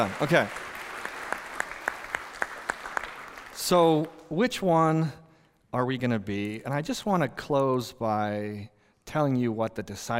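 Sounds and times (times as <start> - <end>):
speech: 0.0 - 0.6, 3.7 - 10.1
audience applause: 0.0 - 4.2
sharp evenly spaced loud claps: 0.0 - 4.7.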